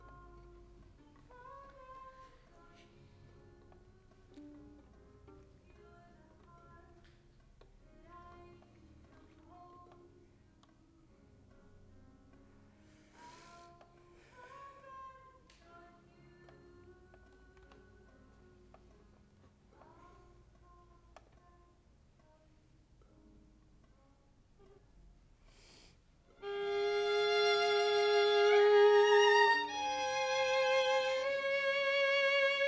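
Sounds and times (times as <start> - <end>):
violin: 26.4 - 32.6.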